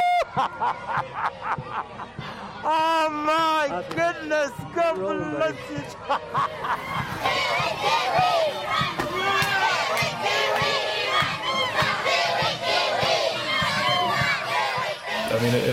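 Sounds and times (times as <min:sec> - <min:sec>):
laughter: 0:00.1 - 0:02.5, 0:05.6 - 0:07.5
speech: 0:00.4 - 0:08.8, 0:15.4 - 0:15.7
crowd of children chanting and shouting in welcome: 0:05.3 - 0:15.5.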